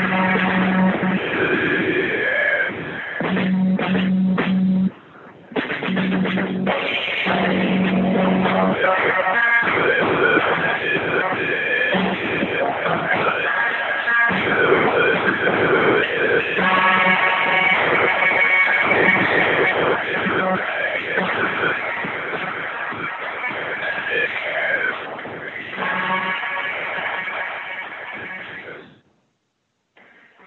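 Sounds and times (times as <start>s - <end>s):
dense rock band instruments: 0.0s - 1.6s, 5.6s - 15.6s, 16.4s - 28.8s
rock song vocals played backwards: 0.0s - 5.0s, 5.9s - 29.0s.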